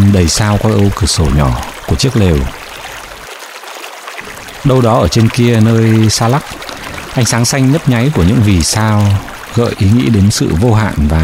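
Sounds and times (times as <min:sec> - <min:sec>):
river water rushing and roaring: 0:00.0 - 0:10.6
speech: 0:00.1 - 0:02.6, 0:04.6 - 0:06.6, 0:07.2 - 0:11.2.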